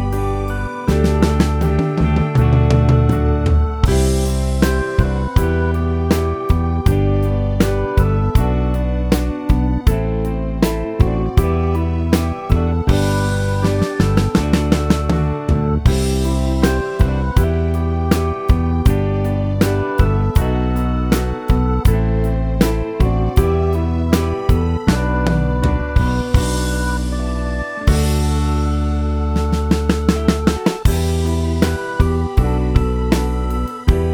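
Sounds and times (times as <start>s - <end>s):
drums: 0.0s - 34.1s
keyboard playing: 0.0s - 34.1s.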